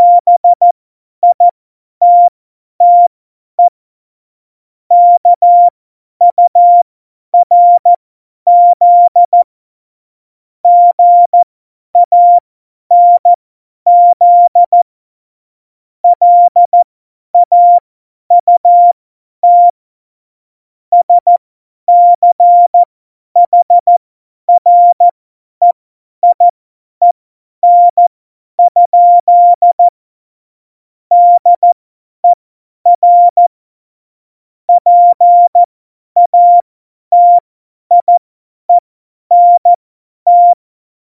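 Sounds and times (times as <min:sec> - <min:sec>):
CW Morse code beeps: 0:00.0 - 0:00.6, 0:01.2 - 0:03.7, 0:04.9 - 0:05.7, 0:06.3 - 0:06.8, 0:07.4 - 0:09.4, 0:10.7 - 0:13.3, 0:13.9 - 0:14.8, 0:16.0 - 0:16.8, 0:17.4 - 0:19.8, 0:21.0 - 0:24.0, 0:24.6 - 0:29.9, 0:31.1 - 0:33.5, 0:34.7 - 0:40.6.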